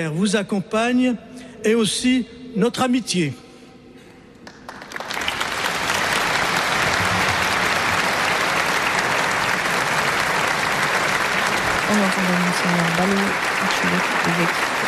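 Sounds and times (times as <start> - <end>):
speech: 0.0 - 3.4
congregation applauding Pope Leo XIV: 4.3 - 14.8.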